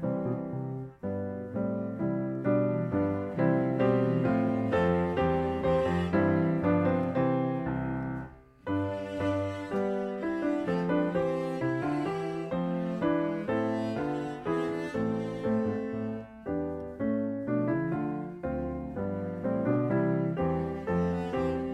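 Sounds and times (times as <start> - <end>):
cello: 0.0 - 21.7
piano: 0.0 - 21.7.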